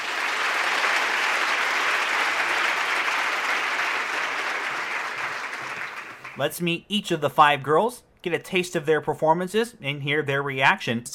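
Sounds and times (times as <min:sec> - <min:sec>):
audience applause: 0:00.0 - 0:06.4
speech: 0:06.4 - 0:11.1.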